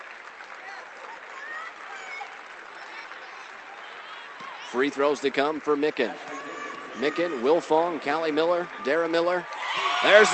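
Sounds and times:
crowd clapping: 0:00.0 - 0:10.3
speech: 0:04.7 - 0:06.4, 0:07.0 - 0:10.3
faint high whoops from the crowd: 0:09.5 - 0:10.3.

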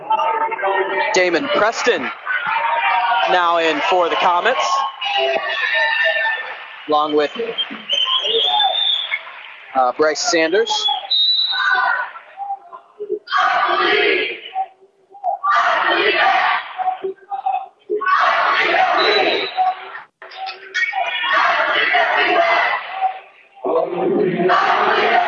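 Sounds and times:
rowdy student section crowd noise: 0:00.0 - 0:25.2
speech: 0:01.1 - 0:02.2, 0:03.3 - 0:05.8, 0:06.9 - 0:08.4, 0:09.8 - 0:11.0.

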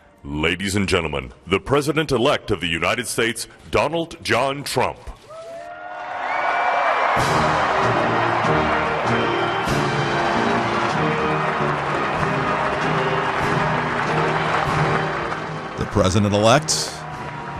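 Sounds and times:
speech: 0:00.2 - 0:05.2, 0:16.0 - 0:17.0
audience applause: 0:06.3 - 0:17.5.

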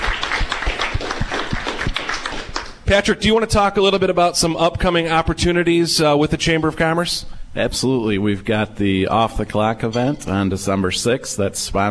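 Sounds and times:
applause at a Chamber of Commerce gathering: 0:00.0 - 0:02.8
speech: 0:02.9 - 0:11.8.

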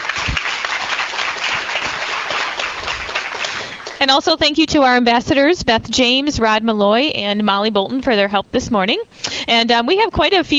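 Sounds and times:
audience applause: 0:00.0 - 0:04.1
speech: 0:04.1 - 0:10.5.

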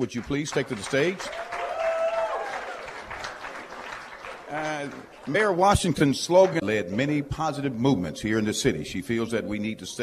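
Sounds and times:
speech: 0:00.0 - 0:01.5, 0:04.5 - 0:10.0
audience clapping for a mayoral candidate: 0:00.0 - 0:06.7.

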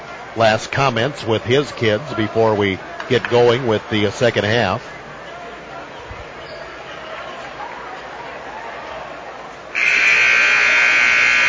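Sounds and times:
crowd murmur: 0:00.0 - 0:11.4
speech: 0:00.4 - 0:04.9
basketball game electronic buzzer: 0:09.8 - 0:11.4.

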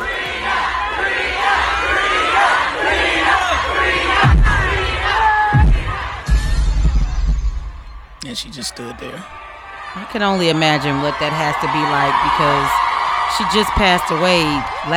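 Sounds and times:
large concert crowd cheering and shouting: 0:00.0 - 0:14.9
deep low thumps: 0:04.2 - 0:08.2
speech: 0:08.4 - 0:09.4, 0:10.0 - 0:14.9.

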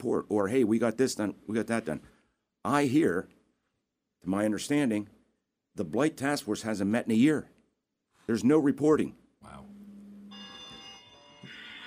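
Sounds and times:
speech: 0:00.0 - 0:03.4, 0:04.2 - 0:05.2, 0:05.8 - 0:07.5, 0:08.3 - 0:09.7
phone ringing with an electronic alert: 0:09.6 - 0:11.8.

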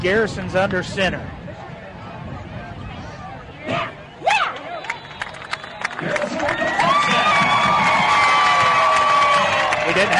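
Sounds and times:
speech: 0:00.0 - 0:01.4, 0:10.0 - 0:10.1
stadium crowd cheering at football game: 0:03.7 - 0:10.1
shrill whistles: 0:04.2 - 0:06.2.

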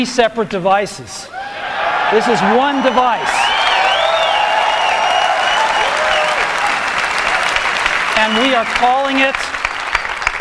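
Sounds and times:
speech: 0:00.0 - 0:01.4, 0:02.1 - 0:03.5, 0:08.2 - 0:09.5
audience clapping at keynote: 0:02.1 - 0:10.3.

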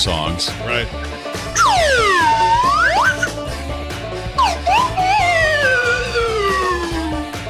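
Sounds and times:
speech: 0:00.0 - 0:03.2
slide whistle being played: 0:01.6 - 0:03.4, 0:04.4 - 0:07.2.

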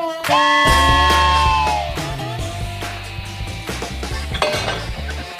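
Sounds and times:
train whistle: 0:00.2 - 0:02.4
clanking metallic clatter: 0:04.2 - 0:05.3.

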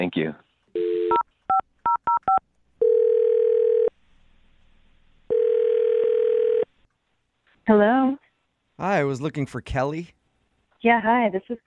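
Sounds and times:
speech: 0:00.0 - 0:00.4, 0:07.7 - 0:08.2, 0:08.8 - 0:10.2, 0:10.8 - 0:11.6
telephone ring tones: 0:00.8 - 0:03.9, 0:05.3 - 0:06.7
telephone dial tone: 0:01.9 - 0:03.9, 0:05.3 - 0:06.7.

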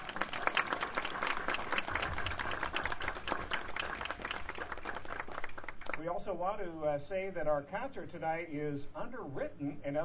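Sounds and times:
audience applause: 0:00.0 - 0:06.0
speech: 0:06.0 - 0:10.0.

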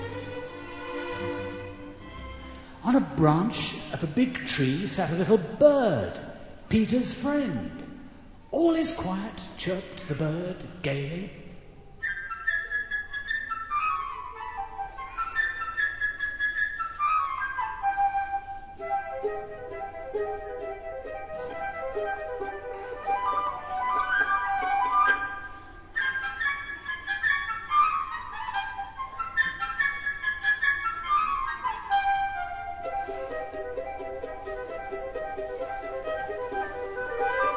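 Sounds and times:
orchestral symphony music: 0:00.0 - 0:06.4, 0:17.1 - 0:37.5
speech: 0:02.9 - 0:07.9, 0:08.5 - 0:11.4
bright high woodwind melody: 0:11.9 - 0:37.5.

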